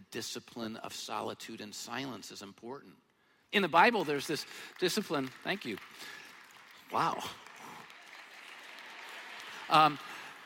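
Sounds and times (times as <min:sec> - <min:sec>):
speech: 0:00.1 - 0:06.2, 0:06.9 - 0:07.4, 0:09.7 - 0:10.1
audience clapping: 0:03.7 - 0:10.4.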